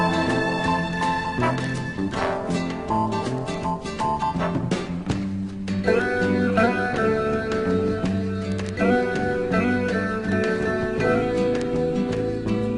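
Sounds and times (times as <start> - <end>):
elevator music: 0.0 - 12.7.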